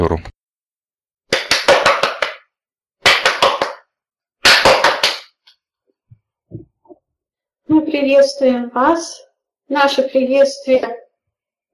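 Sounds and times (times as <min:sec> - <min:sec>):
hands clapping as a greeting at a channeling session: 0:01.3 - 0:05.4
speech: 0:07.7 - 0:11.0.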